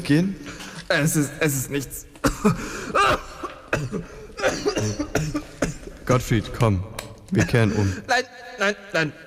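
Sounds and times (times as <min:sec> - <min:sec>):
speech: 0:00.1 - 0:03.2, 0:03.8 - 0:09.2
man coughing: 0:02.2 - 0:06.0.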